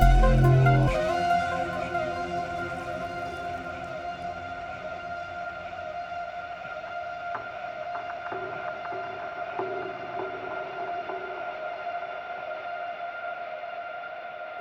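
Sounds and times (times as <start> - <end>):
synth pads: 0.0 - 10.8.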